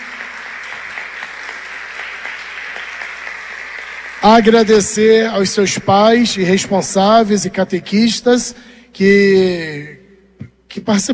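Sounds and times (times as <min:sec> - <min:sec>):
crowd applauding: 0:00.0 - 0:05.8
speech: 0:04.2 - 0:10.0, 0:10.8 - 0:11.1.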